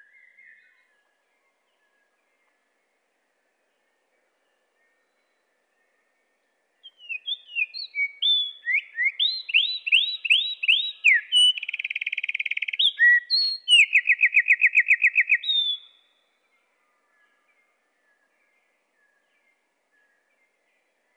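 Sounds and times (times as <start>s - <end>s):
Eurasian wren singing, slowed: 6.8s - 16.0s.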